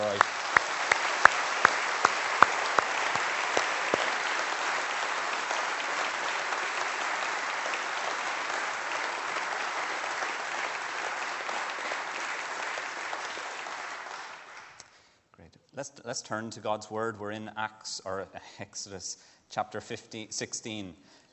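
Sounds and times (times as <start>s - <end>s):
audience applause: 0.0s - 14.8s
speech: 15.8s - 21.2s.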